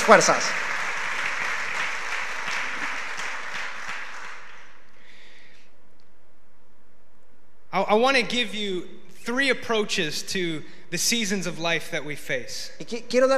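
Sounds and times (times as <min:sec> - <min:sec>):
speech: 0:00.0 - 0:00.7, 0:07.8 - 0:13.3
audience applause: 0:00.0 - 0:05.0.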